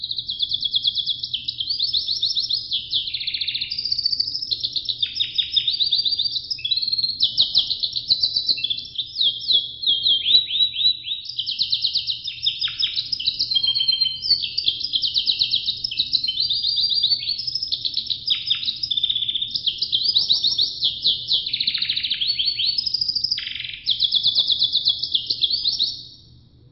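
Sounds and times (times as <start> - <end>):
Russian canary singing rapid trills and rolls: 0.0 - 26.3
steady low hum: 26.1 - 26.7.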